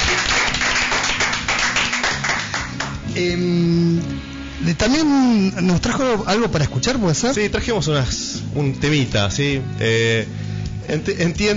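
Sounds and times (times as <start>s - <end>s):
applause: 0.0s - 3.1s
speech: 3.2s - 3.6s, 4.8s - 11.5s.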